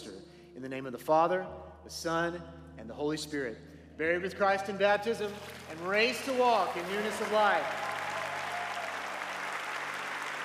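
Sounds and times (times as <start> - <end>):
speech: 0.6 - 7.8
church congregation applauding a baptism: 5.3 - 10.4.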